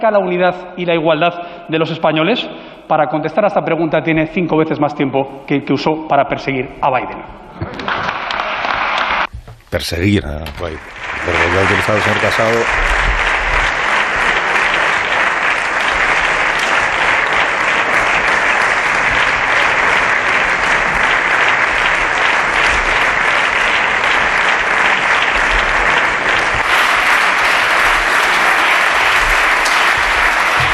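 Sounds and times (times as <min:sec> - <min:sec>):
speech: 0:00.0 - 0:08.2, 0:09.7 - 0:13.0
parliamentary group applauding: 0:07.8 - 0:09.3, 0:10.4 - 0:30.7.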